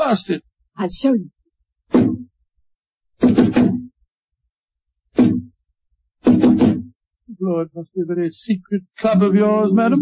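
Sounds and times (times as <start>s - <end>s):
speech: 0.1s - 2.2s, 7.4s - 10.0s
knocking on a solid door: 2.0s - 2.3s, 3.2s - 3.9s, 6.3s - 6.9s.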